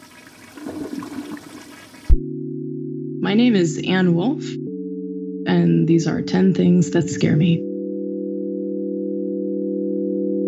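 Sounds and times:
toilet flushing: 0.0 - 2.2
steady low tone: 2.1 - 10.4
speech: 3.2 - 4.6, 5.5 - 7.7.

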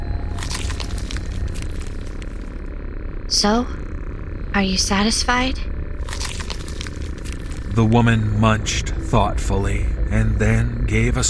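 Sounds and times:
meat being torn apart: 0.2 - 2.6, 6.0 - 8.1
speech: 3.3 - 3.8, 4.5 - 5.7, 7.8 - 11.2.

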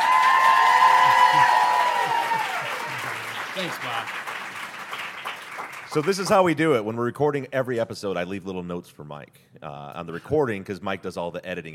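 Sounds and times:
cheering voices: 0.0 - 4.1
audience applause: 0.0 - 6.5
speech: 3.6 - 4.2, 6.0 - 11.7.

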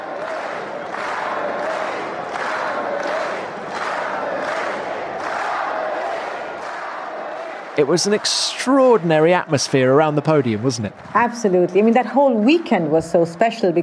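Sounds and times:
crowd chanting: 0.0 - 11.4
speech: 7.8 - 13.8.

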